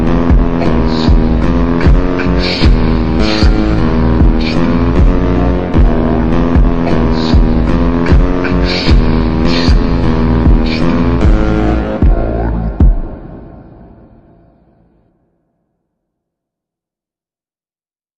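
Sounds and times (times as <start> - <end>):
slowed beat: 0.0 - 13.8.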